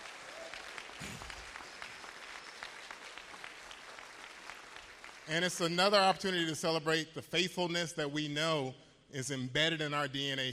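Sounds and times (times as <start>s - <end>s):
crowd applauding: 0.0s - 5.7s
speech: 5.3s - 10.5s.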